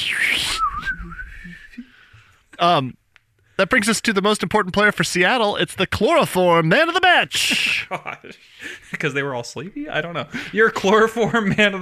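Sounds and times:
person whistling a wizard bird impersonation: 0:00.0 - 0:01.9
speech: 0:02.6 - 0:03.0, 0:03.6 - 0:11.8.

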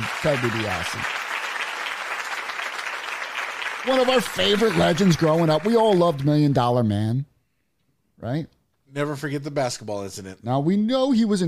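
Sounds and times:
applause sound effect: 0:00.0 - 0:06.7
speech: 0:00.2 - 0:01.2, 0:03.8 - 0:07.3, 0:08.2 - 0:11.4.

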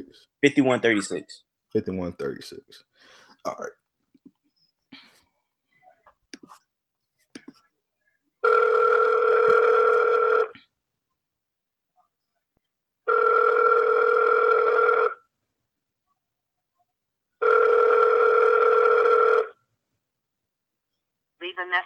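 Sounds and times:
speech: 0:00.1 - 0:03.8, 0:21.6 - 0:21.8
soft clicks and taps: 0:06.1 - 0:06.6, 0:07.2 - 0:07.6
two-tone telephone ring: 0:08.4 - 0:10.5, 0:13.1 - 0:15.2, 0:17.4 - 0:19.6.

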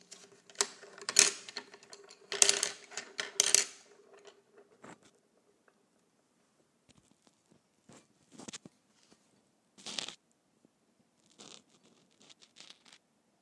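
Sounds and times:
colored pencils knocking and rubbing together: 0:00.0 - 0:05.2, 0:11.3 - 0:13.0.

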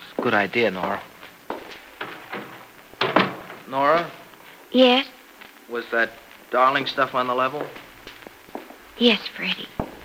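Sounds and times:
speech: 0:00.2 - 0:01.1, 0:03.7 - 0:07.8, 0:09.0 - 0:09.8
door clunking shut: 0:02.0 - 0:03.6.

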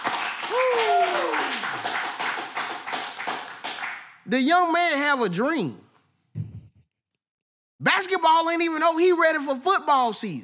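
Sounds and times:
clapping: 0:00.0 - 0:04.2
speech: 0:04.3 - 0:05.8, 0:08.1 - 0:10.4.

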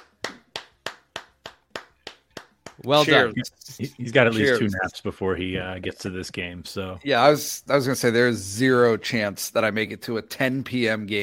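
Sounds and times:
hand clapping for a guest on a show: 0:00.0 - 0:03.2
speech: 0:02.8 - 0:11.2.

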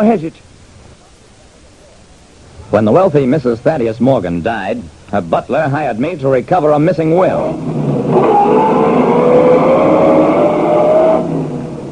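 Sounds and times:
speech: 0:00.0 - 0:00.5, 0:02.7 - 0:08.3
car engine droning while driving: 0:07.4 - 0:11.8.

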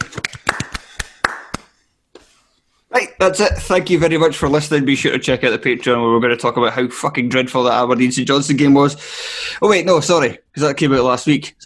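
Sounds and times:
hands clapping: 0:00.0 - 0:02.3
speech: 0:03.0 - 0:11.6.

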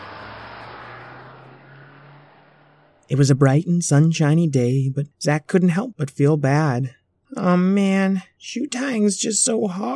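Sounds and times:
school bus engine rumbling as the bus drives away: 0:00.0 - 0:05.4
road noise: 0:00.0 - 0:06.6
speech: 0:03.1 - 0:09.9.

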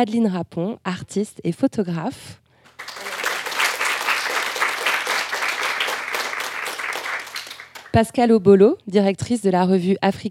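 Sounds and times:
speech: 0:00.0 - 0:02.4, 0:07.9 - 0:10.3
audience applause: 0:02.7 - 0:08.0.

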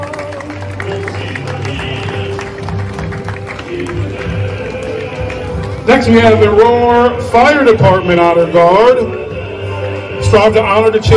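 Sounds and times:
crowd applauding at parade outdoors: 0:00.0 - 0:07.3
broad murmur of voices: 0:00.0 - 0:11.1
speech: 0:05.8 - 0:09.2, 0:10.3 - 0:11.1.

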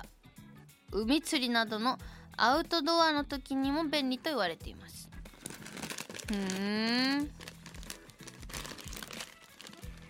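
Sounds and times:
speech: 0:00.9 - 0:05.1, 0:06.3 - 0:07.4
snack bag handled and torn open, plastic crinkling: 0:05.4 - 0:10.0.

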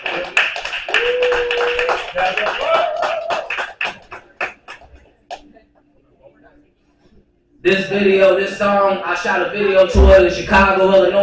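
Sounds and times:
people cheering: 0:00.0 - 0:04.4
audience applause: 0:00.0 - 0:05.0
speech: 0:02.1 - 0:02.9, 0:07.9 - 0:11.2.

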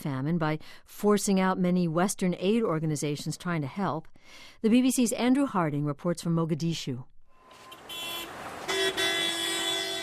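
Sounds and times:
speech: 0:00.0 - 0:07.7
car horns honking in central Mogadishu traffic: 0:07.4 - 0:10.0
engine and road hum while driving through central Mogadishu: 0:07.4 - 0:10.0.

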